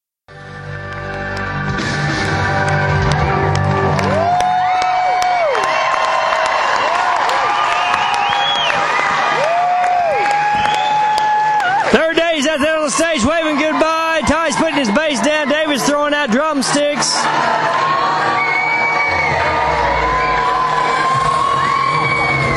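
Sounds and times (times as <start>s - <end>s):
concert crowd cheering and applauding: 0.4s - 22.5s
shrill whistles: 7.5s - 8.9s, 10.5s - 11.2s, 18.3s - 22.5s.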